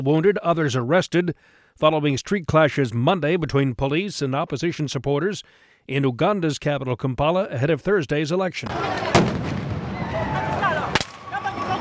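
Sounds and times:
speech: 0:00.0 - 0:09.5
police tear gas launcher firing at a crowd: 0:08.7 - 0:10.2
crowd noise: 0:08.7 - 0:11.8
people shouting: 0:09.9 - 0:11.8.

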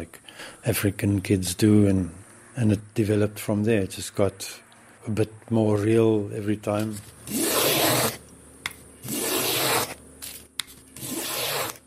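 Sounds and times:
speech: 0:00.0 - 0:07.5
hand plane planing wood for a guitar in a workshop: 0:07.3 - 0:08.2, 0:09.0 - 0:10.0, 0:11.0 - 0:11.8.

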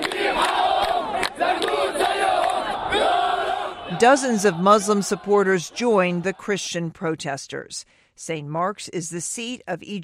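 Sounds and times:
crowd of protesters shouting and chanting: 0:00.0 - 0:06.9
speech: 0:04.0 - 0:10.0.

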